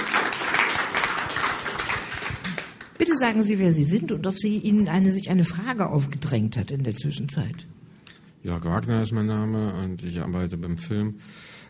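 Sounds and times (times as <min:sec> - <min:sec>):
audience applause for speakers at a discussion event: 0:00.0 - 0:03.0
speech: 0:03.0 - 0:07.8, 0:08.4 - 0:11.6.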